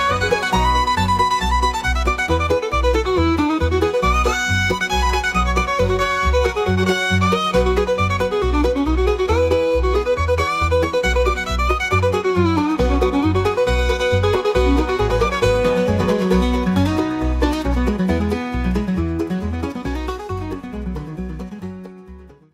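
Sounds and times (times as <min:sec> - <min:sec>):
banjo: 0:00.0 - 0:22.5
instrumental country music: 0:00.0 - 0:22.5.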